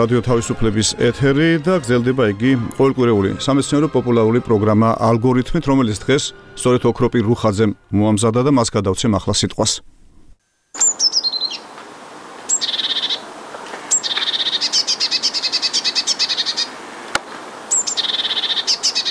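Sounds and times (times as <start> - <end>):
speech: 0.0 - 10.0, 10.8 - 11.0
hiss: 7.8 - 19.0
great tit singing: 10.8 - 11.7, 12.5 - 13.3, 13.9 - 16.8, 17.7 - 19.0.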